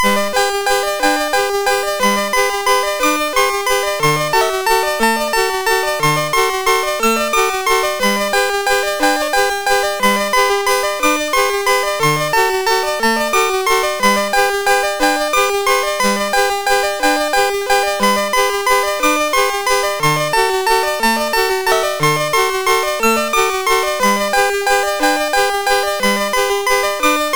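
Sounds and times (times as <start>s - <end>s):
MOS6581R4 SID chip game music: 0.0s - 27.3s.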